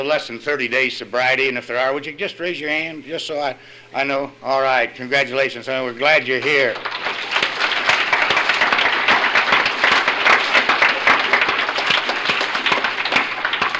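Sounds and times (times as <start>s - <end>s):
speech: 0.0s - 7.3s
audience clapping: 6.1s - 13.7s.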